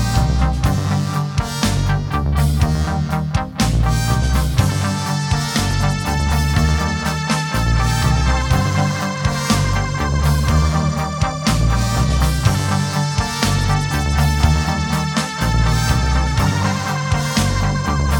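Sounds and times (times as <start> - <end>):
drums: 0.0 - 18.1.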